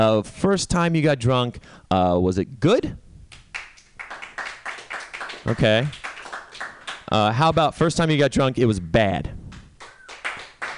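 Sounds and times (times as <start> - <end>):
speech: 0.0 - 3.0, 5.5 - 6.0, 7.1 - 9.4
audience clapping: 3.3 - 7.8, 9.5 - 10.7.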